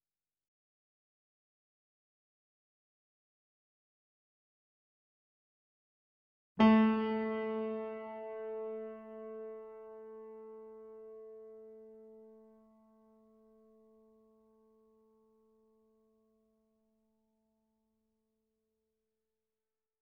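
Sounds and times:
KORG grand piano chord C3 E3 A3 with effects: 6.6s - 12.5s.

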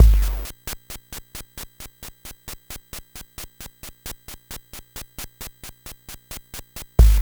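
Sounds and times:
NES eight-bit drum loop: 0.0s - 0.5s, 7.0s - 7.1s.

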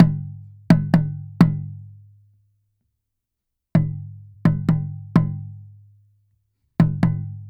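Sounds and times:
small taiko drum from Asia: 0.0s - 2.0s, 3.8s - 5.7s, 6.8s - 7.4s.

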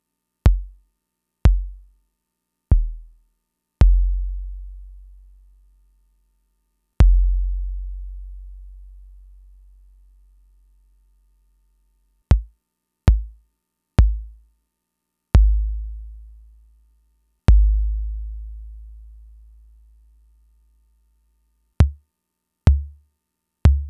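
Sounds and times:
Fricke MFB-522 drum machine kicks: 0.5s - 0.8s, 1.5s - 1.8s, 2.7s - 3.1s, 3.8s - 4.3s, 7.0s - 7.6s, 12.3s - 12.5s, 13.1s - 13.4s, 14.0s - 14.4s, 15.4s - 16.0s, 17.5s - 18.4s, 21.8s - 22.0s, 22.7s - 23.0s, 23.7s - 23.8s.

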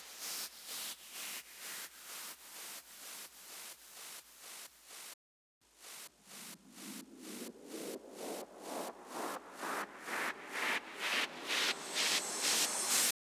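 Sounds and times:
drum loop with effects at 128 BPM: 5.9s - 13.1s.

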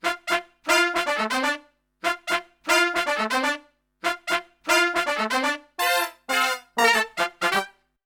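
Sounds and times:
pop brass note in F: 0.0s - 7.8s.

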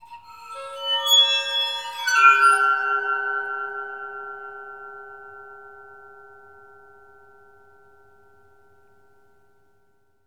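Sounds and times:
waterphone: 0.0s - 8.0s.

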